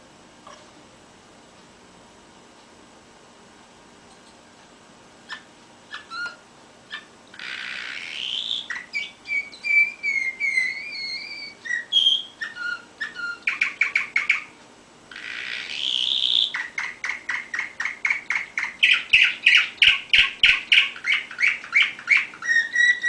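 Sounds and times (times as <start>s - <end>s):
canary singing: 5.2s - 23.0s.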